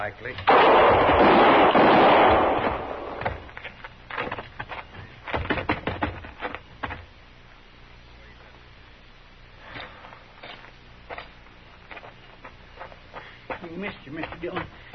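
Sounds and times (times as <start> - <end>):
people talking: 0.0 - 0.5, 13.5 - 14.9
gunshots in a radio drama shootout: 0.5 - 3.5.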